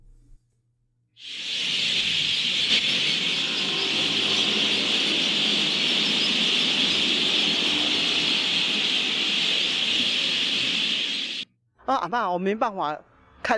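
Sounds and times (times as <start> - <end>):
huge flock of mynas calling: 1.2 - 11.4
speech: 12.0 - 13.5.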